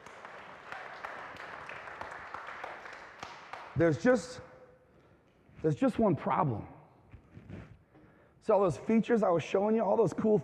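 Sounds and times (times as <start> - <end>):
audience applauding: 0.0 - 4.0
speech: 3.8 - 4.5, 5.6 - 6.8, 8.5 - 10.4.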